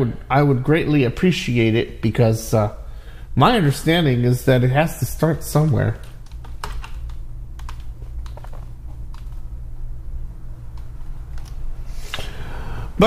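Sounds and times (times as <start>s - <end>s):
speech: 0.0s - 2.8s, 3.4s - 6.1s
steady low hum: 0.0s - 13.0s
typing on a computer keyboard: 6.0s - 9.4s.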